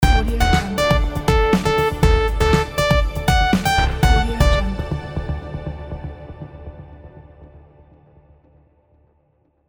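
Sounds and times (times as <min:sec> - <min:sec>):
logo ident jingle: 0:00.0 - 0:06.5.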